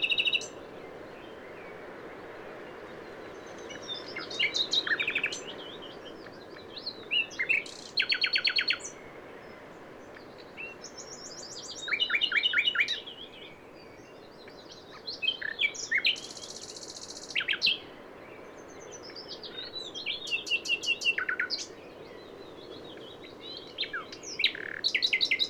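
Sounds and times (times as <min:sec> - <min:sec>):
common nightingale Luscinia megarhynchos singing: 0:00.0 - 0:00.6, 0:03.2 - 0:09.0, 0:10.2 - 0:13.4, 0:14.4 - 0:17.9, 0:18.8 - 0:25.4.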